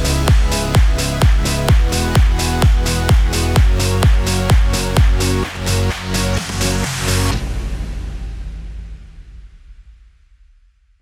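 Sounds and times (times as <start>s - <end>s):
progressive house music in C major at 128 bpm: 0.0s - 7.8s.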